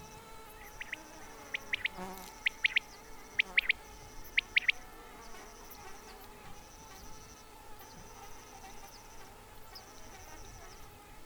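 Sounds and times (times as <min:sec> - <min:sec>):
quail calling: 0:00.7 - 0:03.8, 0:04.4 - 0:04.8.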